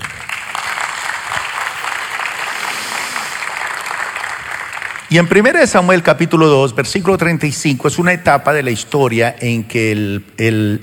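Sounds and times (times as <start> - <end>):
audience applause: 0.0 - 5.4
speech: 5.1 - 10.8.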